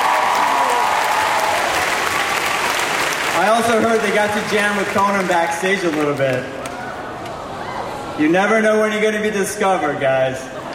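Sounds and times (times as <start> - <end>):
crowd applauding: 0.0 - 7.0
speech: 3.4 - 6.6, 8.2 - 10.5.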